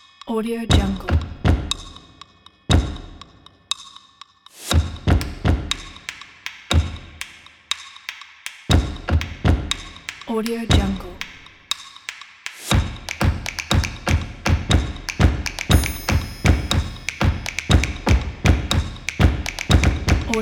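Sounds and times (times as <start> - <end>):
christmas percussion countdown: 0.0 - 20.4.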